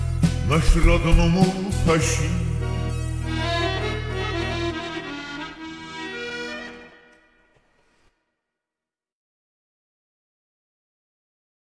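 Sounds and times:
slowed reverb music: 0.4 - 7.6.

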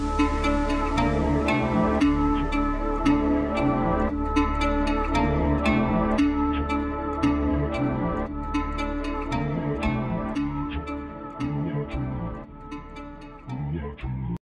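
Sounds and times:
deep house beat with boosted bass: 0.0 - 13.2.

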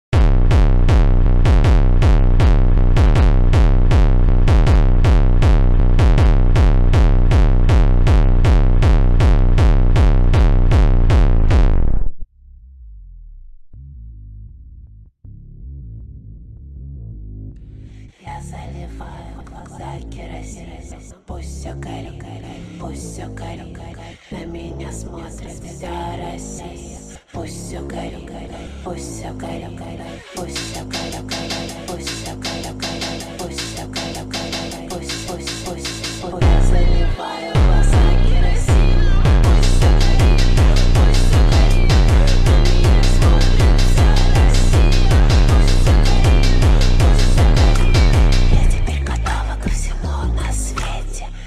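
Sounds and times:
slowed hardstyle remix: 0.1 - 12.2, 30.2 - 50.8.

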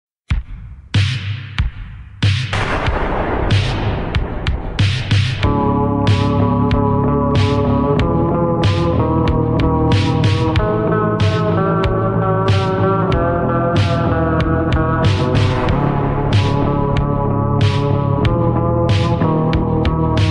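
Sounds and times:
slowed music with reverb: 2.5 - 20.2.

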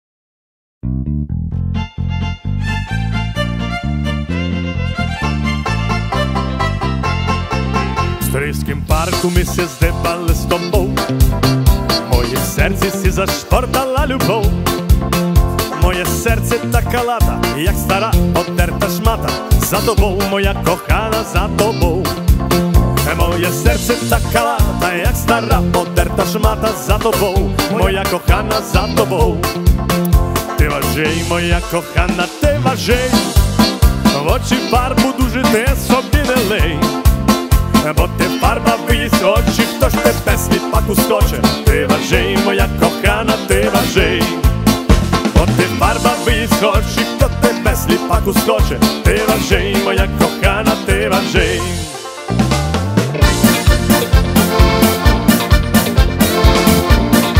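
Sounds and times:
live cover on Ketron Audya5, Ketron Event and Yamaha MODX keyboards: 1.5 - 57.3.

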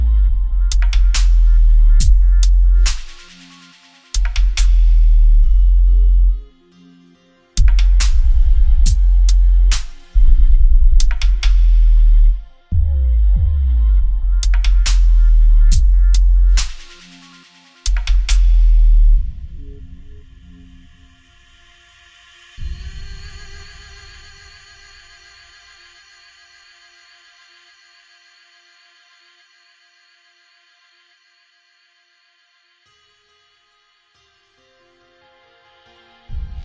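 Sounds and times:
deep bass boosted song: 0.0 - 3.2, 4.2 - 6.5, 7.6 - 16.8, 17.9 - 20.0, 36.3 - 36.6.

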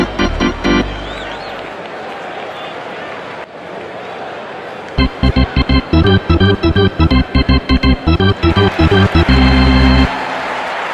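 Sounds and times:
classic hockey organ music in a hockey stadium arena: 0.0 - 1.6, 5.0 - 10.8.

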